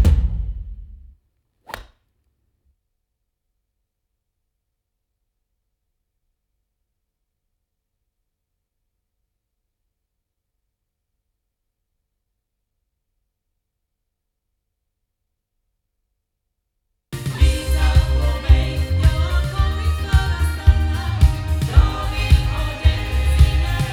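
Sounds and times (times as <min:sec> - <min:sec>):
sound from loudspeakers: 0:17.2 - 0:23.9.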